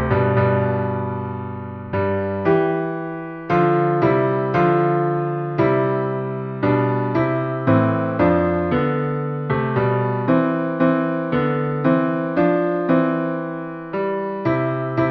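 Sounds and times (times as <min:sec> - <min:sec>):
easy piano piece in C major: 0:00.0 - 0:15.0.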